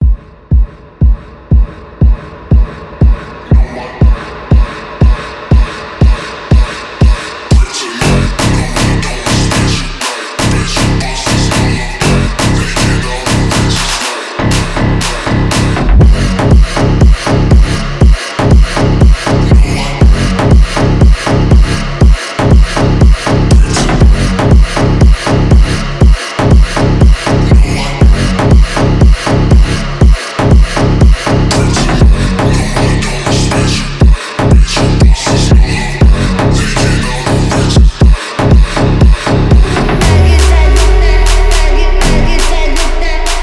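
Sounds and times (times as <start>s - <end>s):
phonk remix: 0.0s - 43.4s.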